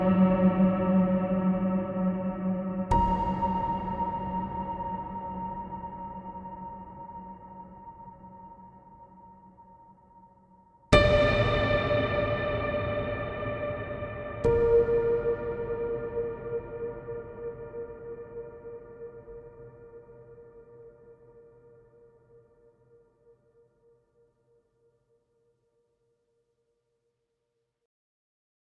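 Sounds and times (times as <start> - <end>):
ambient melody: 0.0 - 10.1, 10.9 - 21.9.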